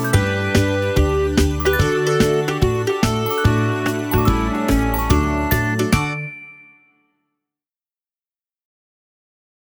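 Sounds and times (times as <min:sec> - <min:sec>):
instrumental music: 0:00.0 - 0:07.0.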